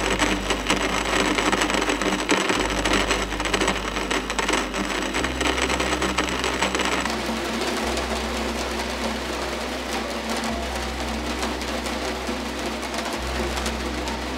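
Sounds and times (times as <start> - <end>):
rain against window: 0.0 - 14.3.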